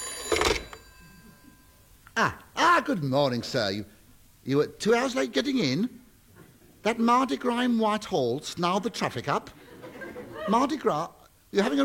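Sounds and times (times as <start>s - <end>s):
telephone ringing as a sound effect in a radio comedy: 0.0s - 1.9s
speech: 2.2s - 6.0s, 6.8s - 9.6s, 10.4s - 11.8s
laughter: 9.5s - 11.0s.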